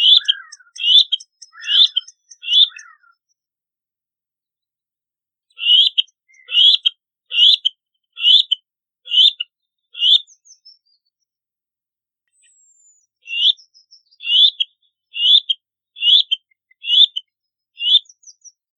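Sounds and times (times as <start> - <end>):
black-necked grebe calling: 0.0 - 3.2, 5.6 - 9.4, 10.0 - 10.2, 13.3 - 13.6, 14.2 - 17.2, 17.8 - 18.1.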